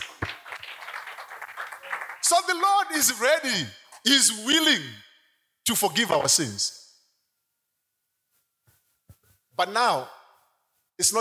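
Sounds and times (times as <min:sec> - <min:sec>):
audience clapping hands: 0:00.0 - 0:03.1
speech: 0:02.3 - 0:05.0, 0:05.6 - 0:06.8, 0:09.6 - 0:10.2, 0:11.0 - 0:11.1.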